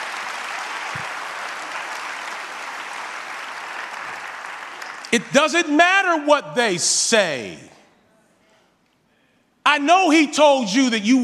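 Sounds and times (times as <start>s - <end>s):
audience clapping hands: 0.0s - 5.6s
speech: 5.1s - 7.7s, 9.8s - 11.2s.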